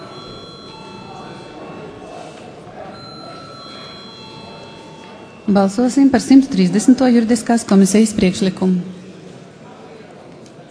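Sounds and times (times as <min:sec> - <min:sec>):
parliament voting call bell: 0:00.0 - 0:07.0
speech: 0:05.5 - 0:09.0.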